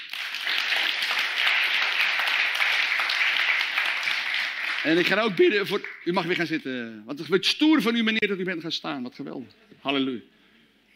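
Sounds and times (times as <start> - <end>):
applause: 0.0 - 6.6
speech: 4.8 - 10.4.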